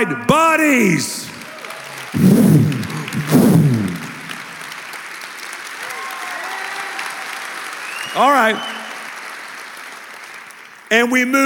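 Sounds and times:
speech: 0.0 - 1.3, 2.1 - 3.3, 8.2 - 8.8, 10.9 - 11.4
audience clapping: 1.2 - 11.4
low steady murmur: 2.2 - 4.7.

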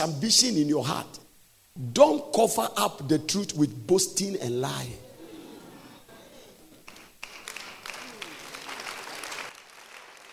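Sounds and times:
speech: 0.0 - 1.2, 1.8 - 5.0
faint voice murmuring: 5.0 - 6.9
audience clapping: 6.6 - 10.3.

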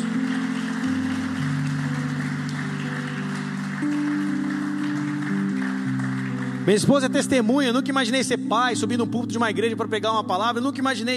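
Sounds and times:
crowd applause: 0.0 - 8.0
sustained keyboard chords: 0.0 - 11.1
speech: 6.6 - 11.1.

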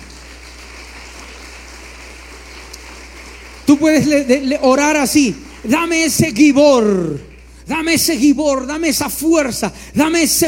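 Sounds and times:
audience applauding: 0.0 - 6.0
speech: 3.7 - 10.4.

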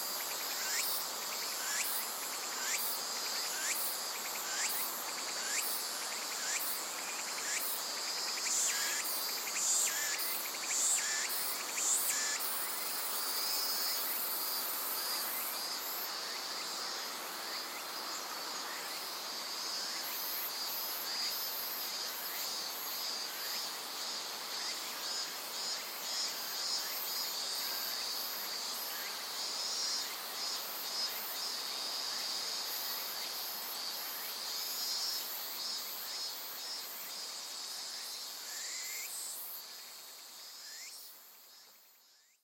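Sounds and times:
insects in a high chorus: 0.0 - 42.4.

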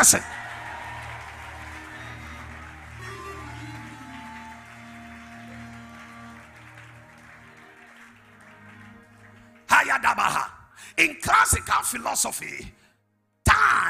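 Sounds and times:
speech: 0.0 - 0.4, 11.0 - 12.8
audience clapping hands: 0.0 - 10.5
sustained droning musical tones: 0.6 - 9.7.

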